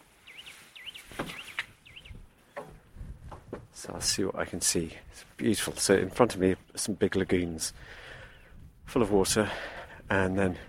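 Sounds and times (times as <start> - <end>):
wading birds calling on estuary marshland: 0.0 - 2.6
soft knocks and rustles: 1.0 - 1.7, 2.4 - 3.8
speech: 3.8 - 8.0, 8.9 - 10.6.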